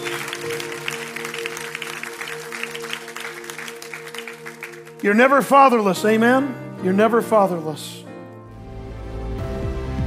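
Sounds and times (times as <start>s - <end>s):
audience clapping: 0.0s - 5.8s
sustained keyboard chords: 0.0s - 10.0s
speech: 5.0s - 8.0s.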